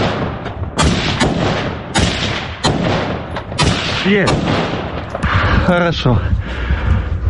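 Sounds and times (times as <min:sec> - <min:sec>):
gunfire shooting at an enemy drone: 0:00.0 - 0:05.7
rumbling background: 0:00.0 - 0:07.2
speech: 0:04.1 - 0:04.7, 0:05.7 - 0:06.4.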